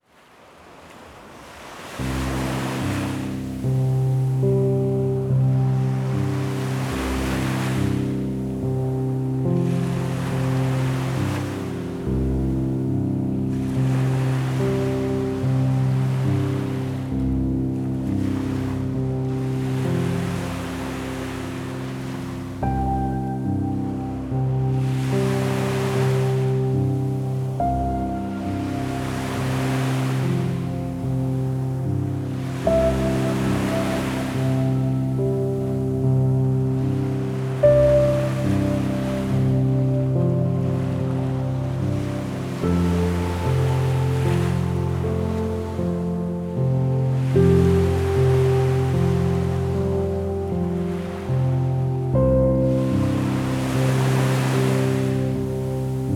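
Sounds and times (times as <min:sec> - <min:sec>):
ocean sounds: 0:00.0 - 0:56.1
sleepy relaxation piano: 0:01.5 - 0:56.1.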